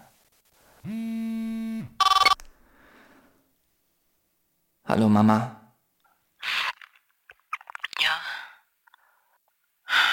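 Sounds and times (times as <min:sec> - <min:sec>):
speech: 0:00.8 - 0:01.1, 0:05.0 - 0:05.6
mobile phone ringing: 0:00.9 - 0:02.4.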